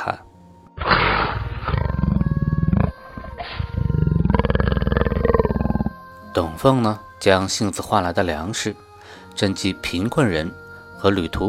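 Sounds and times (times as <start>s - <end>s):
speech: 0.0s - 0.2s, 6.4s - 11.4s
tiger roaring: 0.8s - 6.0s.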